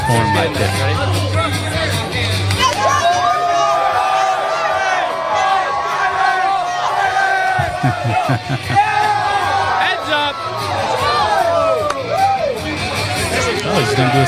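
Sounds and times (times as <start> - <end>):
laughter: 0.0 - 2.0, 7.0 - 10.2, 13.2 - 14.2
crowd cheering: 0.0 - 14.2
speech: 0.1 - 1.2, 7.8 - 8.9, 13.7 - 14.2
scattered whoops and higher yells: 2.6 - 12.6.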